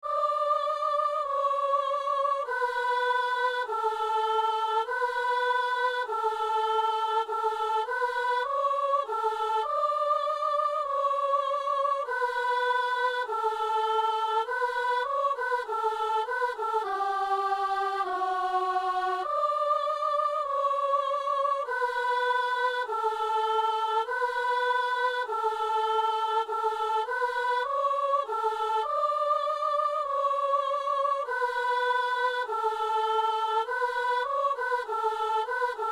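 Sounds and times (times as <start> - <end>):
soprano singing an alleluia: 0.0 - 35.9.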